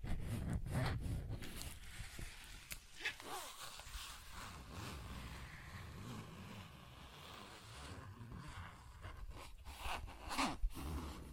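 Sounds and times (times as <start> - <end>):
soft scrapes and taps: 0.0 - 4.3
zipper rasping: 0.0 - 11.3.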